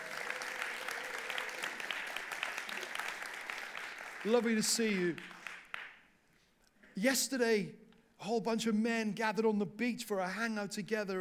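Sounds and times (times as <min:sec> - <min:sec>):
audience applause: 0:00.0 - 0:05.9
speech: 0:04.2 - 0:05.4, 0:07.0 - 0:11.1.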